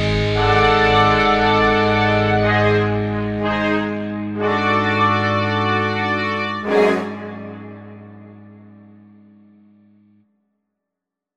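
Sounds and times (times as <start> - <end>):
dramatic orchestral fanfare: 0.4 - 8.4.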